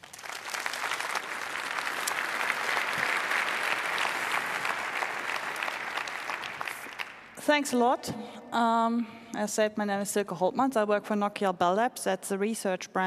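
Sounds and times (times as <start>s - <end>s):
audience applause: 0.0s - 7.4s
speech: 7.4s - 13.0s.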